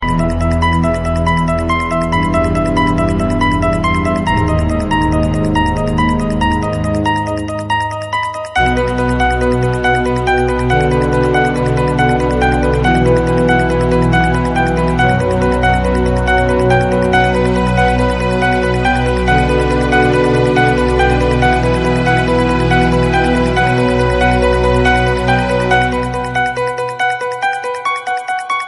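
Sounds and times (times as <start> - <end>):
scary ringtone: 0.0 - 28.6.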